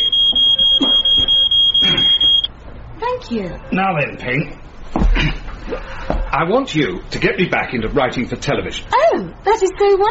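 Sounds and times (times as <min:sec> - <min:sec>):
smoke alarm set off by pipe smoke beeping: 0:00.0 - 0:02.5
speech: 0:03.3 - 0:10.0.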